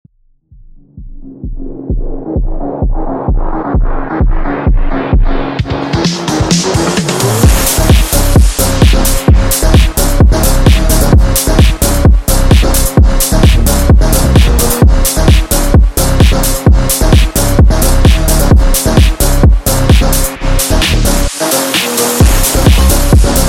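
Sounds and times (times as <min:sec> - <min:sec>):
phonk music: 0:00.5 - 0:23.4.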